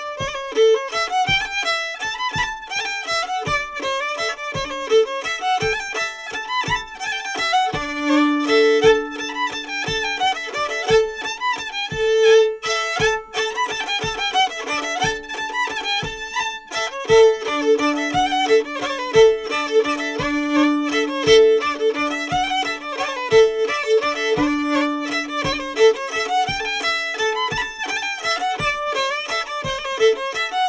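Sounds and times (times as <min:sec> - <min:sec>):
mazurka: 0:00.3 - 0:30.5.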